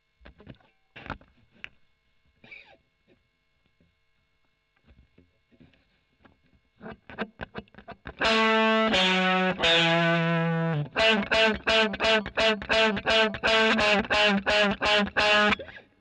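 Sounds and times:
overdriven electric guitar: 6.8s - 15.9s.

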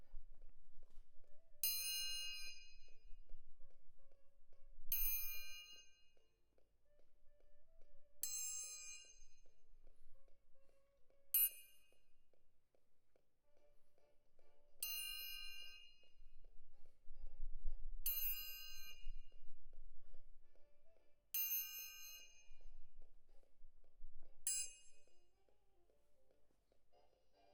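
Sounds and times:
close percussion: 1.6s - 3.2s, 4.3s - 6.9s, 8.1s - 10.0s, 11.3s - 12.9s, 14.8s - 16.2s, 18.0s - 19.3s, 21.3s - 25.3s.

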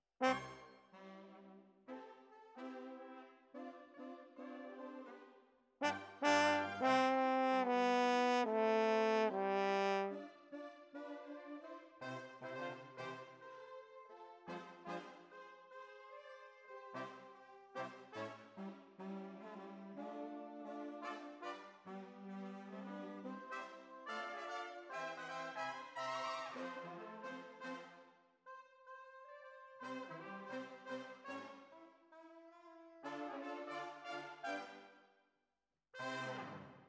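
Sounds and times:
horns: 0.2s - 1.6s, 5.8s - 10.2s, 17.8s - 28.0s, 29.3s - 31.8s, 33.0s - 34.8s, 36.0s - 36.8s.

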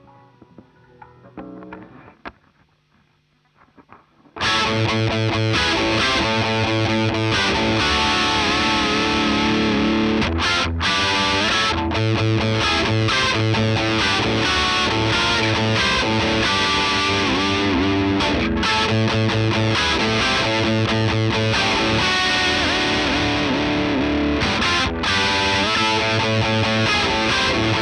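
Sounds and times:
guitar: 0.0s - 27.8s.

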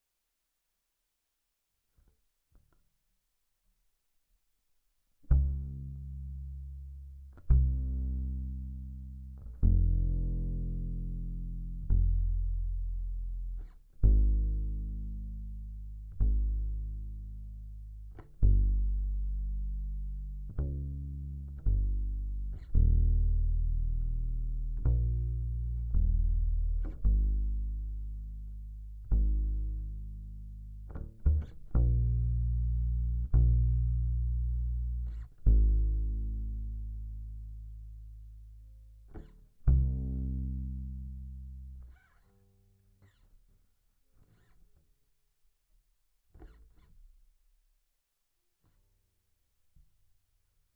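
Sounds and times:
bass guitar recorded by direct input: 5.3s - 43.4s.

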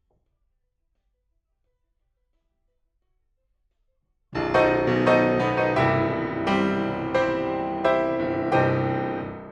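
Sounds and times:
piano: 4.4s - 9.5s.

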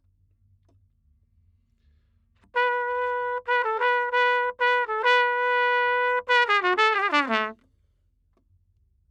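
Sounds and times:
trumpet: 2.5s - 7.6s.

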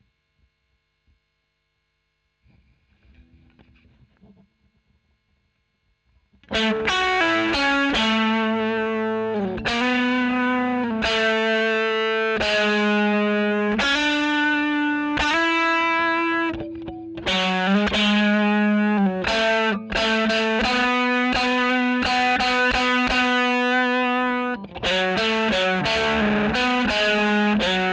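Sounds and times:
overdriven electric guitar recorded with a Royer microphone: 6.4s - 27.9s.

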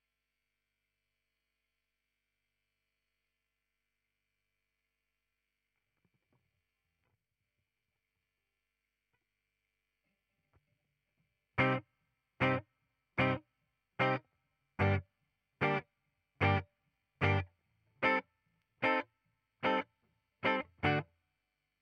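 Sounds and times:
ragtime guitar: 11.6s - 11.8s, 12.4s - 12.6s, 13.2s - 13.4s, 14.0s - 14.2s, 14.8s - 15.0s, 15.6s - 15.8s, 16.4s - 16.6s, 17.2s - 17.4s, 18.0s - 18.2s, 18.8s - 19.0s, 19.6s - 19.8s, 20.4s - 21.0s.

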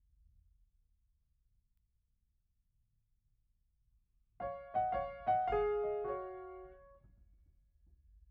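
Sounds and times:
piano: 4.4s - 7.1s.

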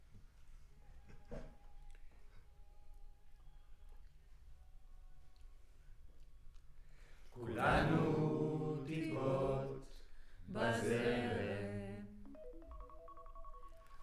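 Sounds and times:
choir recorded with center U47 microphone: 7.4s - 12.8s.

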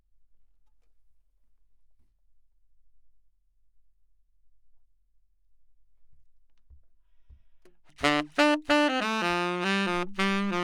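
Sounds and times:
saxophone: 8.0s - 10.6s.

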